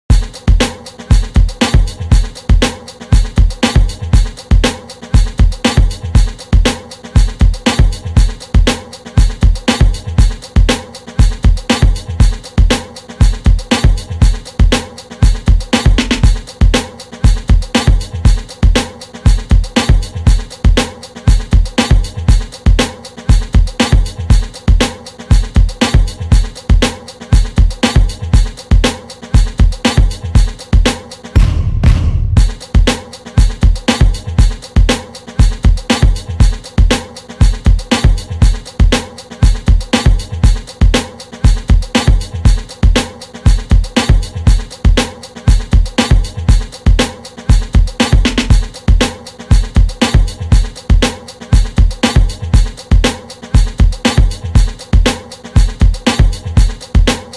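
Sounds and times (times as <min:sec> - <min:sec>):
beats loop track: 0:00.1 - 0:30.7, 0:31.3 - 0:57.3.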